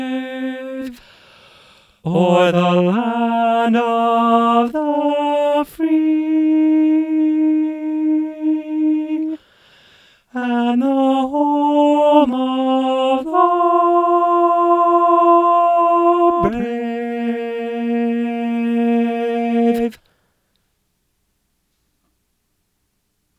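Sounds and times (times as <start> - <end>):
choir with high tenor: 0.0 - 1.0, 2.1 - 9.4, 10.4 - 20.0.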